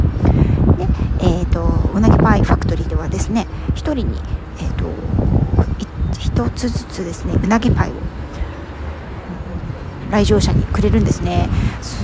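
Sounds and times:
wind blowing outside a facility: 0.0s - 12.0s
speech: 3.2s - 4.9s, 6.4s - 8.2s, 10.1s - 12.0s.

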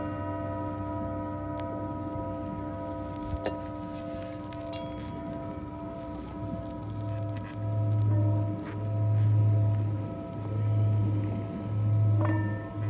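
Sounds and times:
low pulsing throb: 0.0s - 12.8s
singing bowl ringing: 0.0s - 12.8s.

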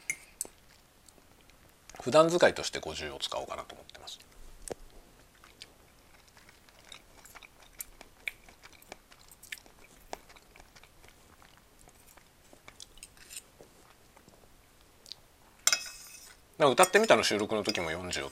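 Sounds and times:
speech: 2.0s - 4.4s, 16.6s - 18.2s
wet chewing and slurping while eating spaghetti: 4.2s - 14.4s.

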